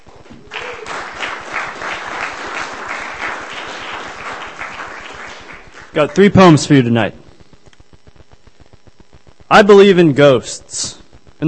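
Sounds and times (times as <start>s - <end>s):
audience applause at a poetry reading: 0.2s - 6.5s
speech: 6.0s - 7.2s, 9.5s - 11.4s.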